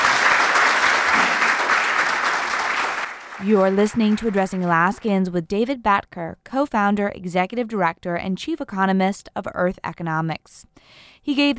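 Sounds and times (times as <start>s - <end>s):
large audience applause after a keynote talk: 0.0s - 5.0s
speech: 3.4s - 11.5s.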